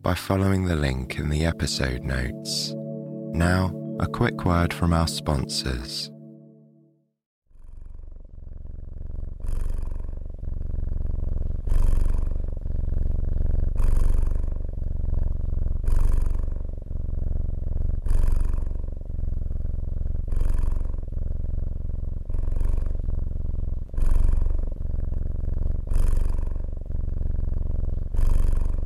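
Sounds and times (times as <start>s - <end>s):
speech: 0.0s - 6.2s
cat purring: 7.6s - 28.8s.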